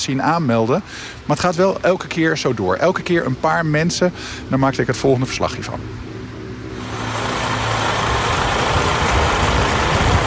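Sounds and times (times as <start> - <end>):
speech: 0.0 - 6.1
large bus engine idling: 6.8 - 10.2.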